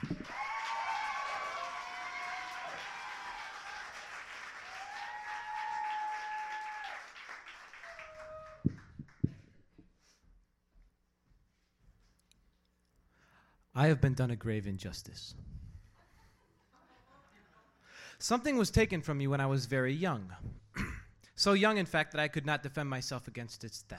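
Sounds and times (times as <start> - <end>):
audience applause: 0.0 - 9.2
speech: 13.8 - 15.5, 18.2 - 20.6, 21.4 - 23.9.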